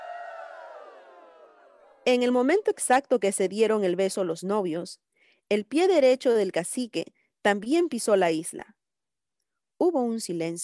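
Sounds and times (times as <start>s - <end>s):
crowd cheering and joyful shouting: 0.0s - 2.4s
speech: 2.1s - 8.8s, 9.8s - 10.6s.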